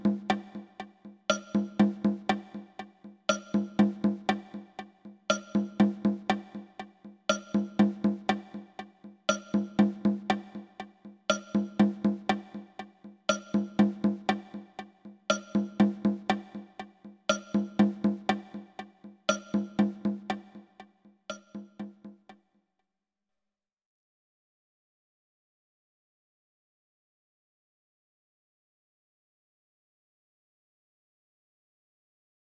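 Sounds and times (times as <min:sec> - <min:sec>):
syncopated rhythm: 0:00.0 - 0:22.0.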